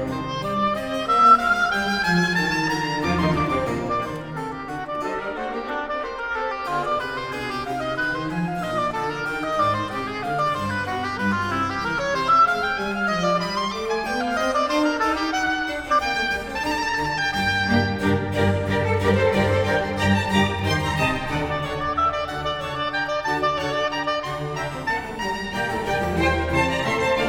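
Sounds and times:
oboe concerto in F major: 0.0s - 27.2s.

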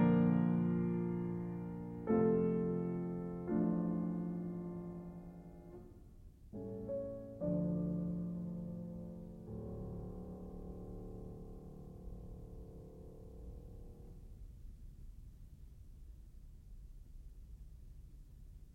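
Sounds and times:
piano prelude in D minor: 0.0s - 14.4s.

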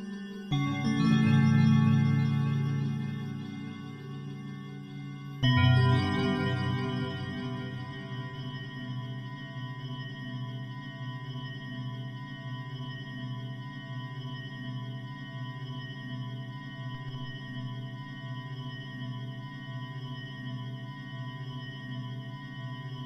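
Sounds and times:
bell: 0.0s - 12.2s.

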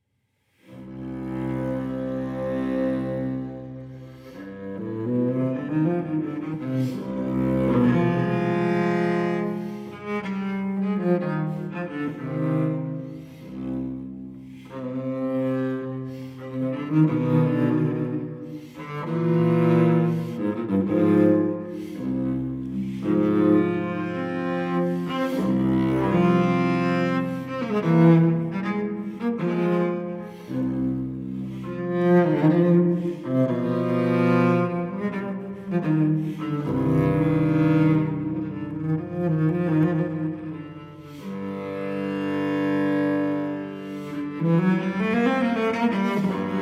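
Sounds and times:
solo cello prelude in C minor: 0.0s - 46.6s.

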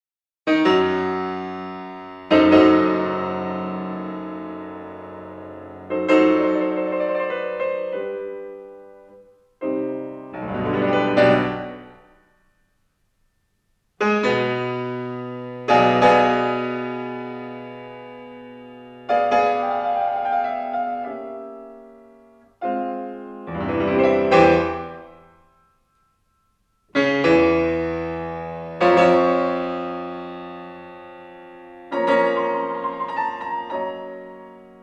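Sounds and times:
piano sonata in C minor: 0.5s - 34.8s.

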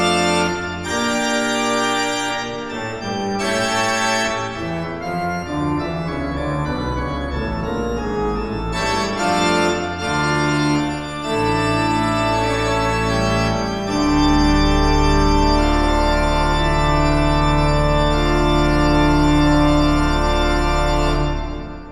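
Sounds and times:
classical music piece: 0.0s - 21.8s.

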